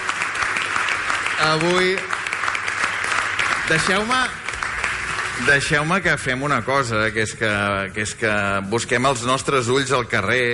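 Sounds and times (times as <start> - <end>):
audience applause in a school assembly hall: 0.0 - 6.4
speech: 1.4 - 2.1, 3.7 - 4.4, 5.4 - 10.5.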